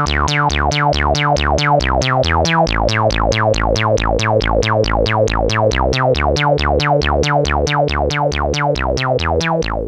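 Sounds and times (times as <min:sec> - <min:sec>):
PAiA 9308 Fatman synthesizer VCF with AR envelope: 0:00.0 - 0:09.8.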